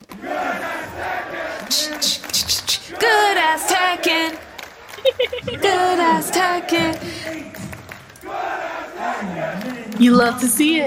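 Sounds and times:
cheering: 0.0s - 10.8s
crowd chanting at gaming tournament: 0.0s - 10.8s
laughter: 0.3s - 10.1s
speech: 1.7s - 4.4s, 5.1s - 7.6s, 9.2s - 10.8s.

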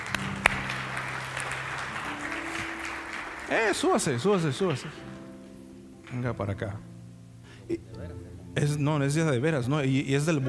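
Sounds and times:
audience applause: 0.0s - 5.1s
speech: 3.5s - 5.1s, 6.1s - 6.9s, 7.7s - 10.4s.

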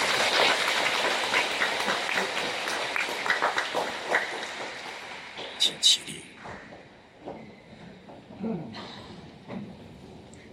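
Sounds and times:
audience applauding: 0.0s - 5.6s
speech: 5.8s - 6.1s.

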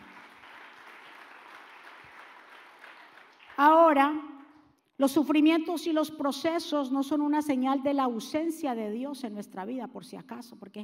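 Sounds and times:
audience applause: 0.0s - 3.6s
speech: 3.6s - 4.3s, 5.0s - 10.8s.

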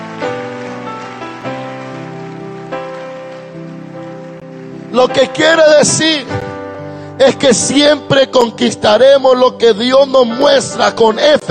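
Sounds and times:
audience applauding: 0.0s - 4.9s
speech: 5.0s - 6.5s, 7.2s - 11.4s.

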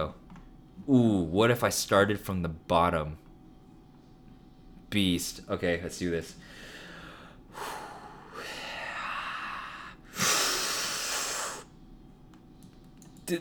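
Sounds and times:
speech: 0.9s - 3.2s, 4.9s - 6.6s, 7.6s - 7.8s
breathing in and out into a microphone: 6.4s - 11.7s.

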